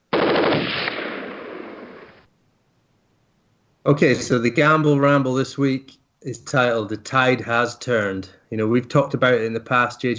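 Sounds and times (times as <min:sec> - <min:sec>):
machine-gun fire sound effect: 0:00.1 - 0:02.2
speech: 0:03.9 - 0:10.1.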